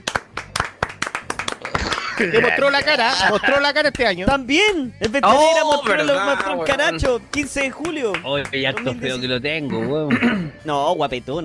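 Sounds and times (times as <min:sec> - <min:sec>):
clapping applause: 0:00.0 - 0:04.2, 0:05.7 - 0:09.0
laughter: 0:01.7 - 0:03.9
speech: 0:02.2 - 0:11.4.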